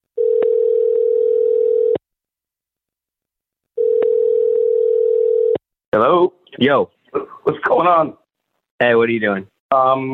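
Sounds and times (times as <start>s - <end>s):
phone ringing tone before call connects: 0.2s - 2.0s, 3.8s - 5.6s
speech: 6.6s - 7.0s, 7.8s - 8.2s, 8.8s - 10.1s.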